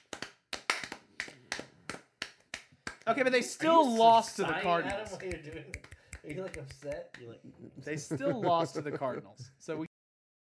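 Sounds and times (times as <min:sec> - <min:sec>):
round of applause: 0:00.0 - 0:03.0
speech: 0:03.1 - 0:09.9
laughter: 0:04.4 - 0:06.5, 0:07.2 - 0:09.8.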